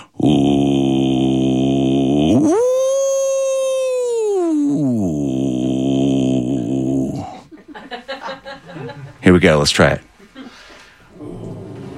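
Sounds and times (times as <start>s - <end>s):
person imitating whale song: 0.0s - 7.5s
laughter: 7.3s - 9.2s
speech: 9.5s - 10.0s.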